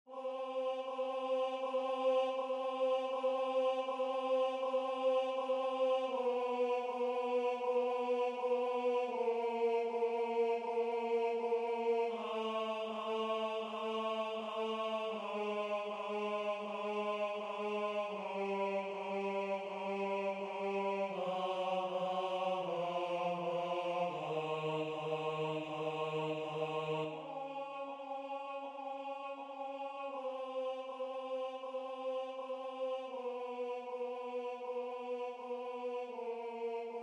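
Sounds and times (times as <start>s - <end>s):
tenor singing chorale: 0.0s - 37.0s.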